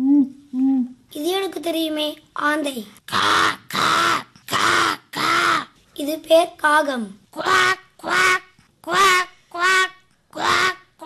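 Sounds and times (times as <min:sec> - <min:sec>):
speech: 0:01.1 - 0:03.6, 0:06.1 - 0:07.7
person imitating duck quacks: 0:03.1 - 0:05.7, 0:07.4 - 0:11.0.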